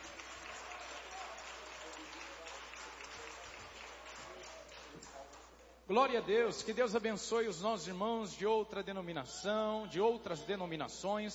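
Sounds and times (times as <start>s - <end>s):
audience applauding: 0.0s - 5.6s
speech: 5.9s - 11.3s.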